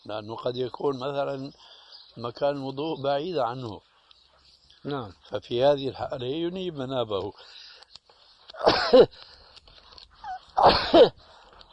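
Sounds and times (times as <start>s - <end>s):
speech: 0.0s - 3.9s, 4.8s - 7.6s, 8.6s - 9.3s, 10.6s - 11.3s
person sneezing: 8.6s - 9.2s, 10.3s - 11.2s.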